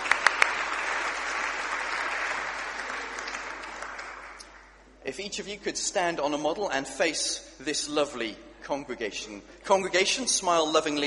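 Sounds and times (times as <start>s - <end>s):
audience giving a round of applause: 0.0s - 4.7s
speech: 5.1s - 11.0s.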